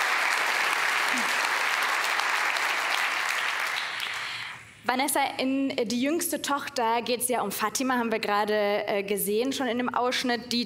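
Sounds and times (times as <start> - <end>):
audience applause: 0.0 - 4.5
speech: 4.9 - 10.6.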